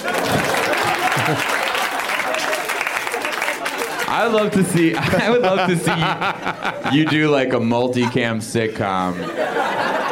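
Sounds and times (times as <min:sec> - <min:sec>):
crowd clapping: 0:00.0 - 0:05.6
laughter: 0:00.0 - 0:10.1
speech: 0:01.3 - 0:01.6, 0:04.1 - 0:10.0.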